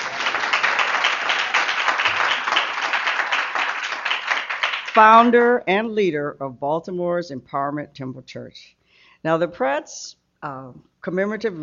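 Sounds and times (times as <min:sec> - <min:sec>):
audience applause: 0:00.0 - 0:05.0
speech: 0:05.0 - 0:11.6.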